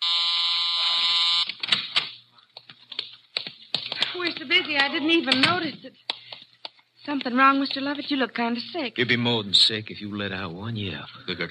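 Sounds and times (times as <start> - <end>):
electric door-release buzzer: 0.0 - 1.6
speech: 4.3 - 6.1, 7.1 - 11.4.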